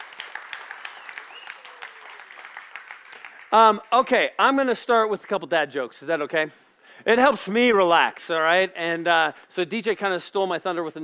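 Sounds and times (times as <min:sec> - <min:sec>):
audience clapping: 0:00.0 - 0:04.2
speech: 0:03.5 - 0:11.0.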